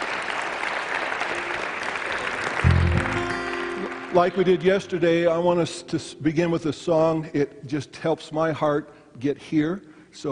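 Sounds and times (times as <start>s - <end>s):
audience applause welcoming a speaker: 0.0s - 5.0s
speech: 4.1s - 10.3s.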